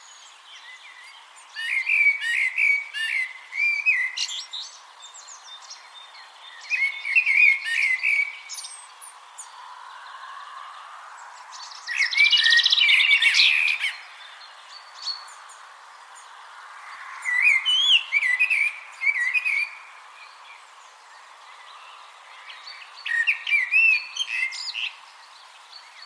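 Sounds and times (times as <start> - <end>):
Eurasian blackbird singing: 0.0 - 9.6, 11.5 - 15.5, 16.2 - 20.6, 21.5 - 25.0.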